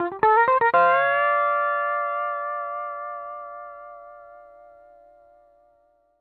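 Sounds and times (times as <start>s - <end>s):
country music loop at 120 BPM: 0.0s - 3.3s.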